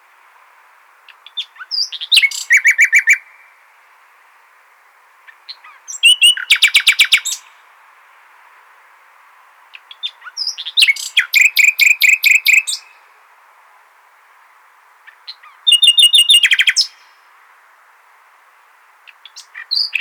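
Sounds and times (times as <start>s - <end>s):
common nightingale singing: 1.0s - 3.6s, 5.2s - 7.6s, 9.7s - 13.1s, 15.0s - 17.3s, 19.0s - 19.9s.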